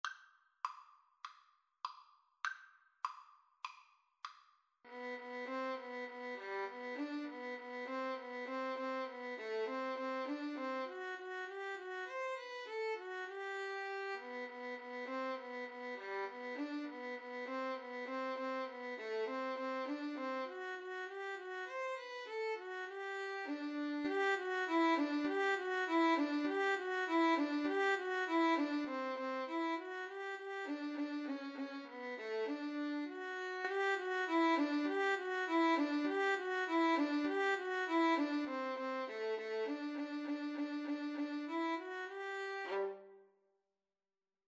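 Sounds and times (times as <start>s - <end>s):
Christmas song violin duet: 4.9s - 43.2s.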